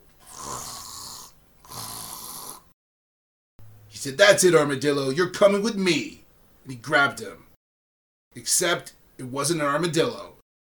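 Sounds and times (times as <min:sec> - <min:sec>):
loud raspy snoring: 0:00.2 - 0:02.8
speech: 0:03.9 - 0:07.4, 0:08.4 - 0:10.4.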